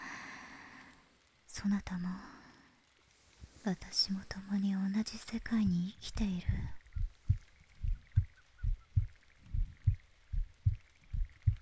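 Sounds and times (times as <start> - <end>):
speech: 1.6 - 2.4, 3.6 - 6.8
heartbeat heard through the chest: 5.5 - 11.6.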